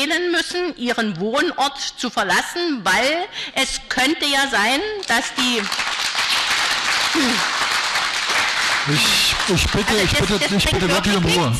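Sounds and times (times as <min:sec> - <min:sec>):
speech: 0:00.0 - 0:06.0, 0:07.1 - 0:07.6, 0:08.8 - 0:11.5
audience applause at council meeting: 0:05.4 - 0:11.2.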